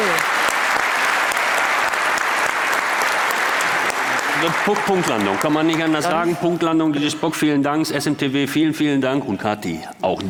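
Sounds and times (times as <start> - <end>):
audience applause: 0.0 - 6.6
speech: 4.4 - 10.2.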